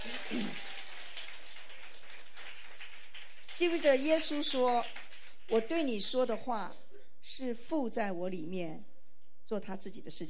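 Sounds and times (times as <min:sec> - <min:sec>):
audience applause: 0:00.0 - 0:05.7
speech: 0:03.6 - 0:08.9, 0:09.5 - 0:10.2.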